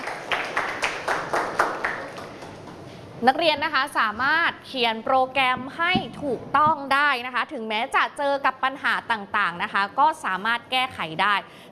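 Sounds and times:
students clapping: 0.0 - 2.8
speech: 3.2 - 11.7.

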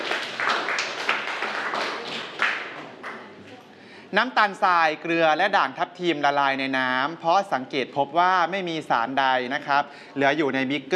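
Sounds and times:
students clapping: 0.0 - 3.4
speech: 4.1 - 10.9.

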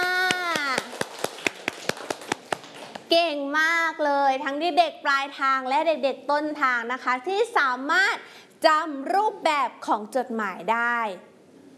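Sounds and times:
children clapping hands: 0.0 - 3.1
speech: 3.1 - 11.3.

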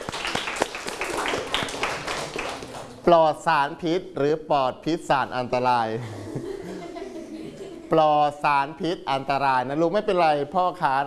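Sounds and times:
people clapping for a friend: 0.0 - 3.1
speech: 3.1 - 6.4, 7.9 - 11.0
laughter: 5.9 - 8.4.

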